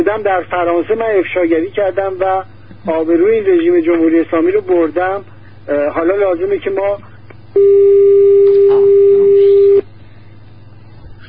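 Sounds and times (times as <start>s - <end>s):
speech: 0.0s - 8.2s
telephone busy tone after a call is cut off: 7.6s - 9.8s.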